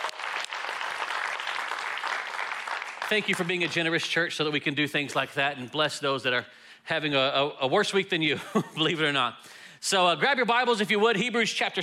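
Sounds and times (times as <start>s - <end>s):
audience applause: 0.0s - 3.7s
speech: 3.1s - 11.8s.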